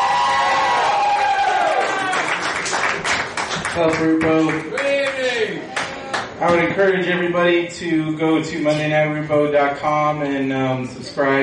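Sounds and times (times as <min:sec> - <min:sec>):
live show audience cheering and whooping for a performer: 0:00.0 - 0:06.4
speech: 0:03.8 - 0:05.8, 0:06.4 - 0:11.4.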